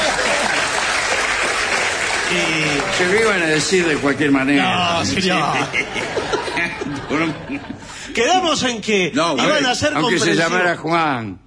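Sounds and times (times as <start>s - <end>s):
laughter: 0.0s - 1.1s, 4.6s - 8.4s
audience applause at a live comedy show: 0.0s - 4.6s
speech: 2.3s - 11.4s.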